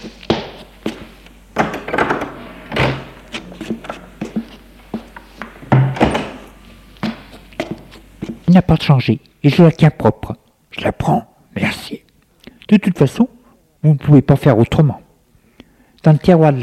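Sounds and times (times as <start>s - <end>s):
bedroom door opening: 1.6s - 4.0s, 5.7s - 6.5s
hollow wooden thumps and knocks: 1.6s - 6.4s
speech: 8.5s - 11.9s, 12.7s - 15.0s, 16.0s - 16.6s.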